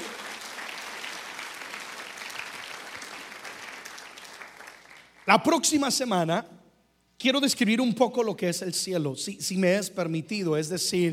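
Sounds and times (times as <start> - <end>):
audience applause: 0.0 - 5.2
speech: 5.3 - 6.6, 7.2 - 11.1.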